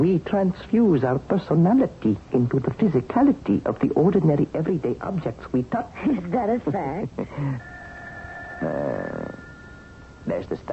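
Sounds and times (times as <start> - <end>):
speech: 0.0 - 7.7, 8.6 - 9.4, 10.3 - 10.7
telephone ringing: 7.6 - 10.7.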